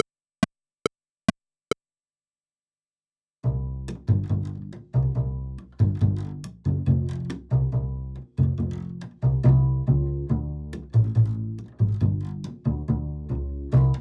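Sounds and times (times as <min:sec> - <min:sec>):
bass: 0:03.4 - 0:13.9.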